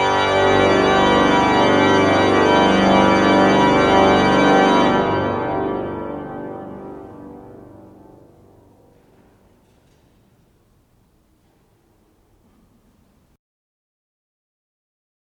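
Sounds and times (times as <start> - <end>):
organ: 0.0 - 13.4
plainchant singing: 6.9 - 13.4.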